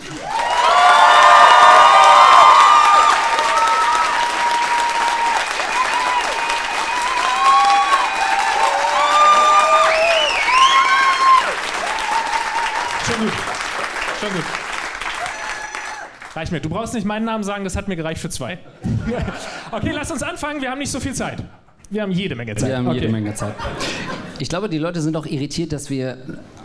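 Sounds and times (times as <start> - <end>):
loud audience applause: 0.0 - 16.4
speech: 16.4 - 26.6
laughter: 18.7 - 20.0, 22.6 - 24.4.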